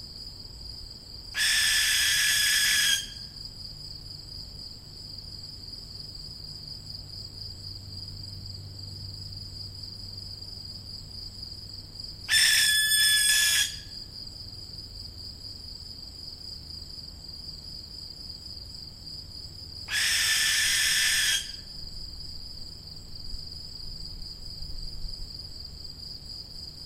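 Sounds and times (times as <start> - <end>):
young barn owl hissing screech: 1.4 - 3.2, 12.3 - 13.9, 19.9 - 21.6.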